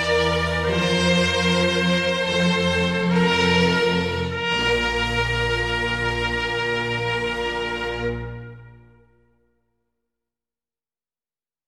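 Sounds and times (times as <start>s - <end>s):
trumpet concerto: 0.0s - 9.3s.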